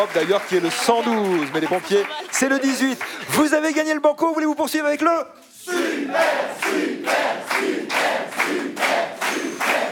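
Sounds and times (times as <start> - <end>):
studio audience cheering in rhythmic waves: 0.0 - 3.0
speech: 0.0 - 9.8.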